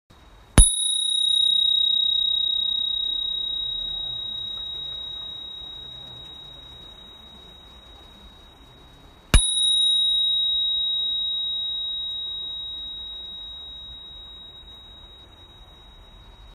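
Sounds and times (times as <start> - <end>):
bicycle bell: 0.6 - 16.5.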